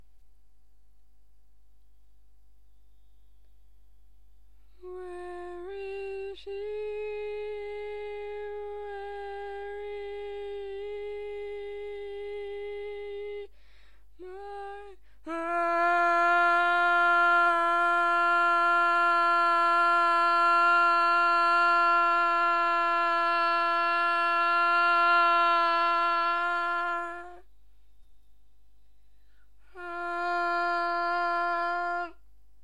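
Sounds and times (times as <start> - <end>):
barbershop tenor singing: 4.8 - 13.5, 14.2 - 27.5, 29.6 - 32.2.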